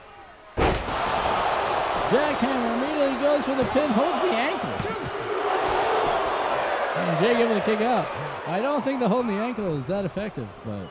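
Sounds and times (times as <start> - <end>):
wrestling video game crowd noise: 0.0 - 10.8
wrestling video game body-slam impact: 0.6 - 1.1
speech: 2.1 - 5.2, 7.0 - 10.8.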